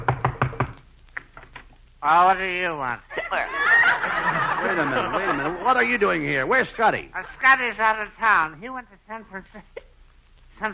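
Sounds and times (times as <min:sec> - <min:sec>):
knocking on a door: 0:00.0 - 0:00.8
speech: 0:02.0 - 0:09.8
laughter: 0:03.1 - 0:06.2.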